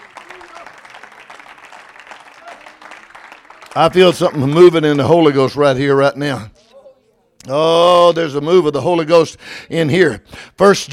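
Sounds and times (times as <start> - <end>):
audience clapping: 0.0 - 5.3
speech: 3.8 - 6.6, 7.4 - 10.9.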